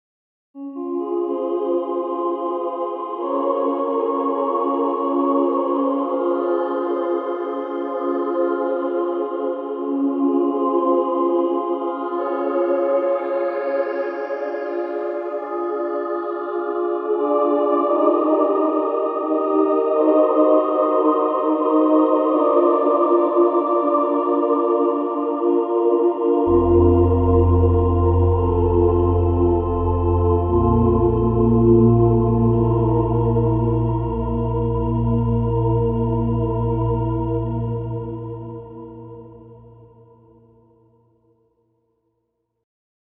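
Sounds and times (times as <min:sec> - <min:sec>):
choir singing: 0:00.6 - 0:40.8.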